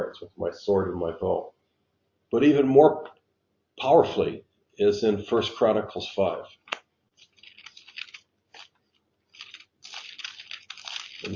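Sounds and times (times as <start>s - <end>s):
speech: 0.1s - 1.6s, 2.3s - 3.2s, 3.8s - 6.6s
book pages turning: 6.5s - 11.3s.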